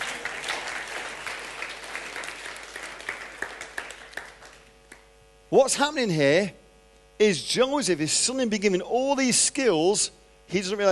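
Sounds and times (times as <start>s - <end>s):
audience applause: 0.0s - 5.1s
speech: 5.5s - 6.6s, 7.2s - 10.9s.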